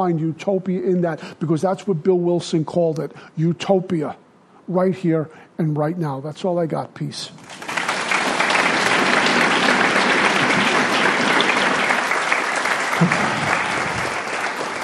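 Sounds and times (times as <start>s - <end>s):
speech: 0.0s - 7.7s
audience applause at a group meeting: 7.4s - 14.8s.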